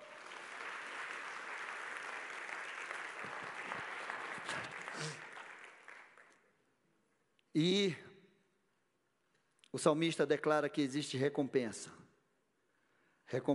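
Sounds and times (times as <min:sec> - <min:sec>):
audience applauding: 0:00.0 - 0:06.4
speech: 0:07.6 - 0:08.1, 0:09.8 - 0:12.0, 0:13.3 - 0:13.5.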